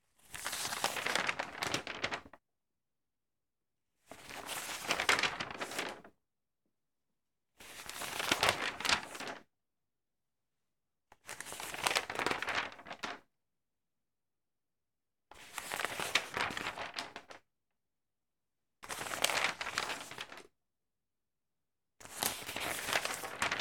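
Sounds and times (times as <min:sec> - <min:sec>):
newspaper pages rustling while reading: 0:00.3 - 0:02.4, 0:04.2 - 0:06.1, 0:07.8 - 0:09.4, 0:11.4 - 0:13.2, 0:15.5 - 0:17.4, 0:18.9 - 0:20.4, 0:22.1 - 0:23.5.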